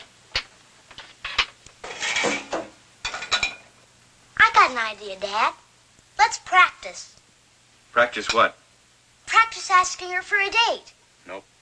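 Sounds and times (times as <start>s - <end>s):
dishes being loaded into a dishwasher: 0.0s - 3.8s, 8.2s - 8.5s
plates and cutlery rattling: 0.4s - 3.7s
speech: 4.8s - 5.6s, 6.2s - 7.2s, 7.9s - 8.6s, 9.5s - 11.5s.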